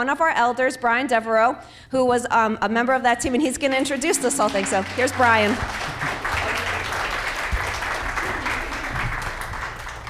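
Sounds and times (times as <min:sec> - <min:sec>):
speech: 0:00.0 - 0:06.2
audience applause: 0:04.4 - 0:10.0.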